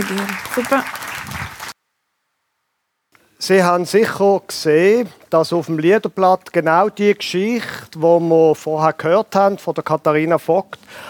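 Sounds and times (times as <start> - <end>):
speech: 0.0 - 1.4, 3.4 - 11.0
audience applause for volunteers: 0.0 - 1.8.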